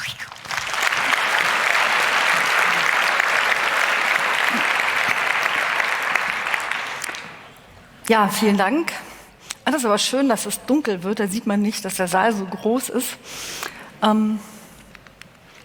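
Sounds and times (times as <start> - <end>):
audience applause: 0.3 - 7.6
speech: 8.1 - 9.1, 9.7 - 14.5.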